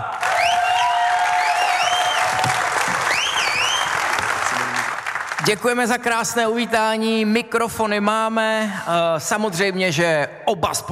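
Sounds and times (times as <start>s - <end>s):
audience applause for an Olympic champion: 0.0s - 5.8s
speech: 5.4s - 10.9s.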